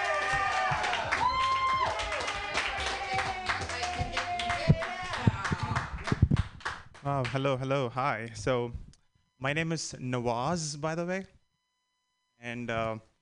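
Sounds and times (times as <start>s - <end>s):
audience clapping for a first-time comedian at a comedy show: 0.0s - 7.6s
speech: 7.1s - 11.4s, 12.4s - 13.1s.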